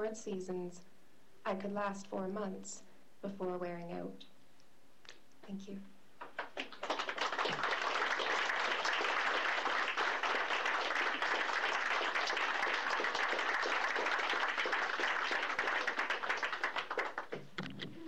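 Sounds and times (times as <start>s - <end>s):
speech: 0.0s - 4.3s, 5.5s - 6.0s
crowd applauding: 6.2s - 17.5s.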